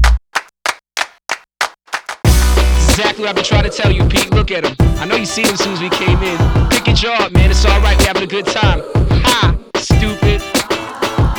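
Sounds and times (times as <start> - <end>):
sharp hand claps: 0.0 - 3.0
speech: 3.0 - 10.2.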